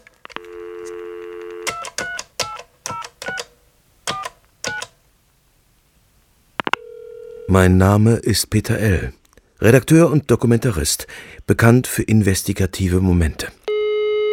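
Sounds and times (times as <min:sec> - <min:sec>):
touch-tone telephone dial tone: 0:00.3 - 0:03.4, 0:06.6 - 0:07.5
speech: 0:07.5 - 0:13.6.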